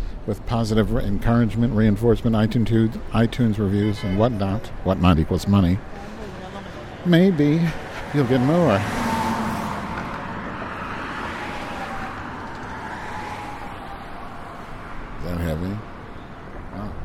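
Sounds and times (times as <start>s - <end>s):
one louder passing vehicle: 0.0s - 17.0s
traffic roar of cars and road vehicles while crossing Wacker Drive: 0.0s - 17.0s
speech: 0.2s - 6.1s, 7.0s - 9.0s.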